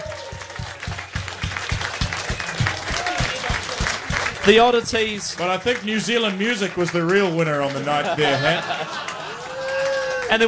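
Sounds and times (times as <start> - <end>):
crowd applause for quiz winners: 0.0 - 10.4
speech: 4.5 - 9.1, 10.3 - 10.4
laughter: 7.7 - 10.0.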